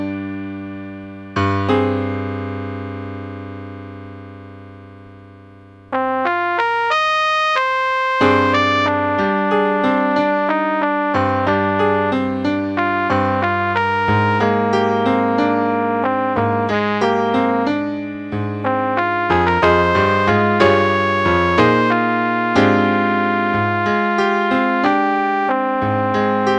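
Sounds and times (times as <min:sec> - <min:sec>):
piano playing a duet in A-flat: 0:00.0 - 0:26.5
flugelhorn playing a duet in A-flat: 0:06.0 - 0:17.7, 0:18.6 - 0:26.5.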